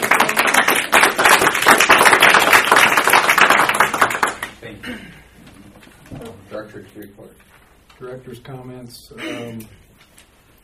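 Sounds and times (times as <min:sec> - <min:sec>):
round of applause: 0:00.0 - 0:04.6
speech: 0:06.8 - 0:09.8.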